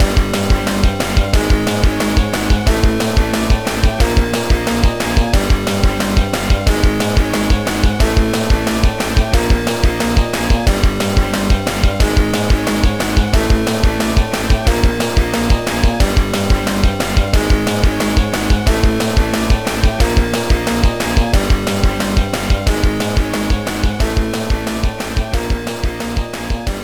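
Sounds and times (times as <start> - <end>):
minigame boss background music: 0.0 - 26.8.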